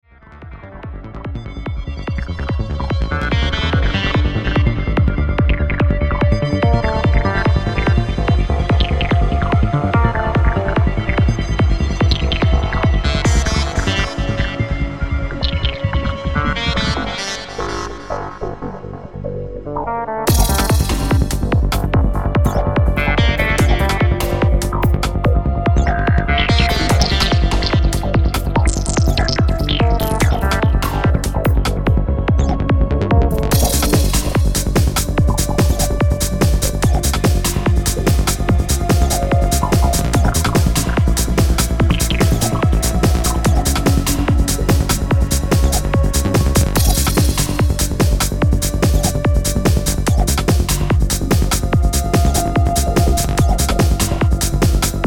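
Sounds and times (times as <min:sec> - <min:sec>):
bassline: 0:00.0 - 0:55.0.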